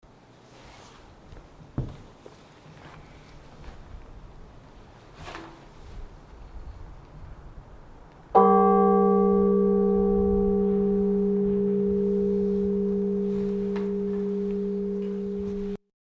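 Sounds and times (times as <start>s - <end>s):
bell ringing: 8.4s - 15.8s.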